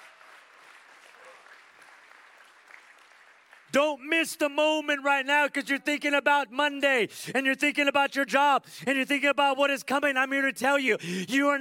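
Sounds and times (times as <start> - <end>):
audience clapping hands: 0.0 - 3.8
speech: 3.7 - 11.5.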